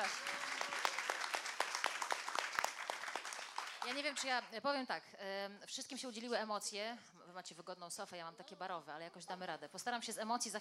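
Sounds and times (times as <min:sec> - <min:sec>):
audience applause: 0:00.0 - 0:04.2
speech: 0:03.9 - 0:10.6.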